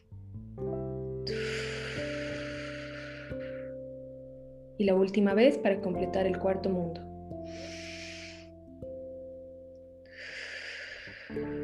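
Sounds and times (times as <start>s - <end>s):
sustained musical drone: 0.7s - 4.8s, 5.5s - 11.6s
breathing out during a guided meditation: 1.3s - 3.9s, 7.4s - 8.6s, 10.1s - 11.6s
speech: 4.8s - 7.1s.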